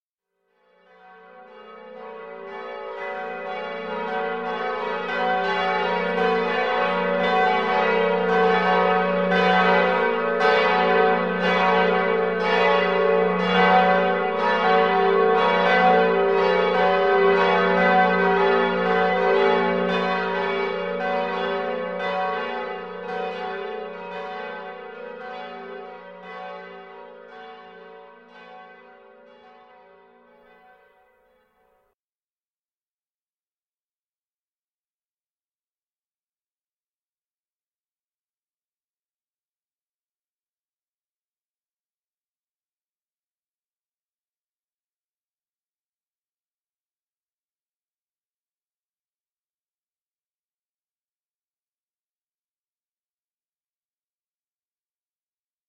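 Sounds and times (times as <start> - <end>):
bells ringing: 1.5 - 26.6.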